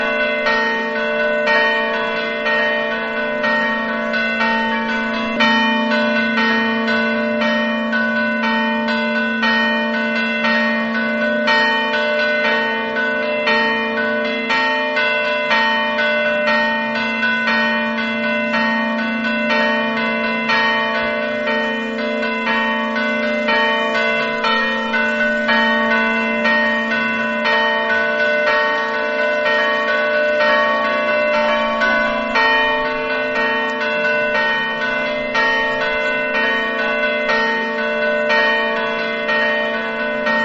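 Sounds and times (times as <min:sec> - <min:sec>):
bells ringing in Monteaperta: 0:00.0 - 0:40.4.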